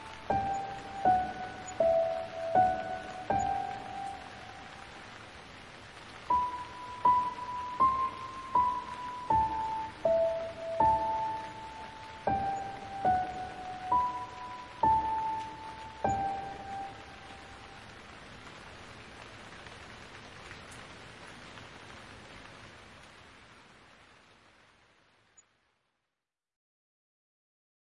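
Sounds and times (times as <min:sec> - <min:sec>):
calming piano music: 0:00.0 - 0:18.1
rain: 0:00.0 - 0:26.2.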